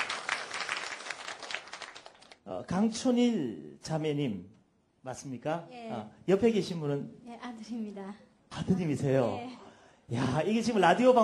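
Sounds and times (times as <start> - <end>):
audience applause: 0.0 - 2.4
speech: 2.5 - 11.2.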